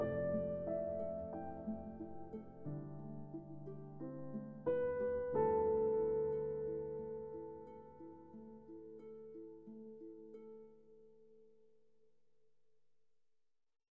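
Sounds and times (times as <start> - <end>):
piano suite: 0.0 - 11.0.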